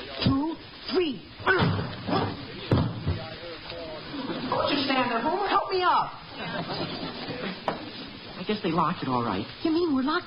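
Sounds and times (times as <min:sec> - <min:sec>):
people throwing themselves against a locked door: 0:01.6 - 0:03.2
laughter: 0:03.8 - 0:05.6, 0:06.2 - 0:08.4
speech: 0:08.6 - 0:10.2.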